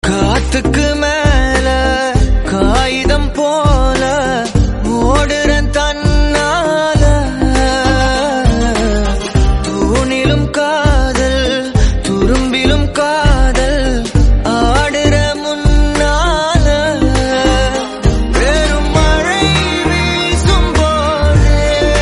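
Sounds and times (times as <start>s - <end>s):
Tamil love song: 0.0s - 22.0s.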